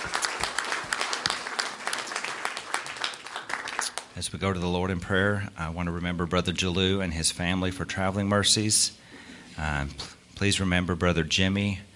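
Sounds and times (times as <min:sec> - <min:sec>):
crowd applause: 0:00.0 - 0:04.1
speech: 0:04.2 - 0:09.0, 0:09.6 - 0:11.9.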